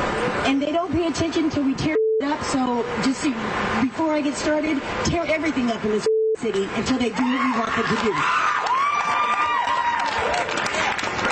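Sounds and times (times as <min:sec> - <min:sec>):
speech: 0:00.5 - 0:08.5
audience cheering: 0:07.2 - 0:11.2
audience clapping: 0:08.0 - 0:11.2.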